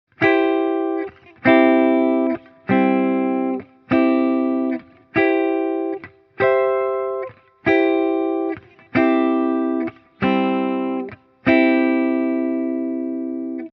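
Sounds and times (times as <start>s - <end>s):
C major chords with inversions: 0.1s - 13.7s.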